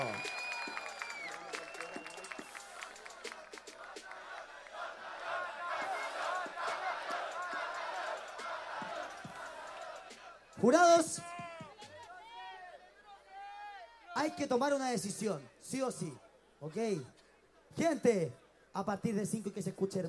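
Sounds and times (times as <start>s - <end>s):
high whistles: 0.0s - 3.0s
crowd applauding: 0.0s - 10.2s
crowd cheering: 0.0s - 14.6s
speech: 10.6s - 11.3s, 14.3s - 17.2s, 17.8s - 20.0s.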